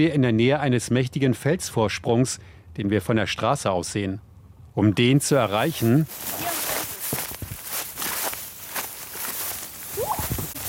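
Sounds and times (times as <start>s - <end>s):
speech: 0.0s - 6.6s
footsteps through knee-high grass in Queensland near Toowoomba: 5.4s - 10.6s.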